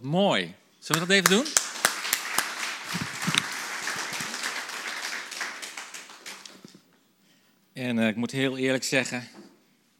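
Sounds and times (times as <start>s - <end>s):
speech: 0.0s - 1.7s, 7.8s - 9.4s
crowd applauding: 0.9s - 6.9s.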